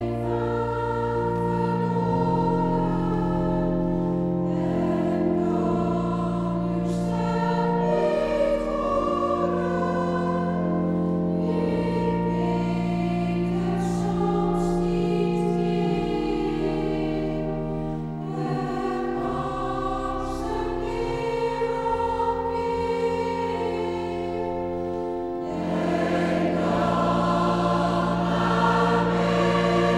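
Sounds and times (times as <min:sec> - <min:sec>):
mixed choir singing: 0:00.0 - 0:29.9.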